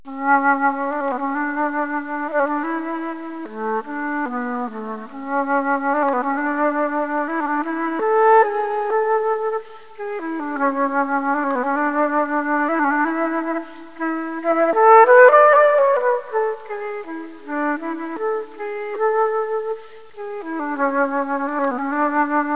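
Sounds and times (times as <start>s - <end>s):
flute: 0.1s - 22.5s.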